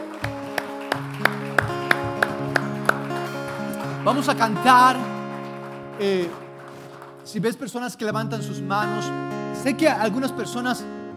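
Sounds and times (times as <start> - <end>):
audience clapping in time with music: 0.0 - 7.4
sustained keyboard chords: 0.0 - 7.4, 8.1 - 11.1
speech: 4.0 - 5.1, 6.0 - 6.4, 7.3 - 10.9.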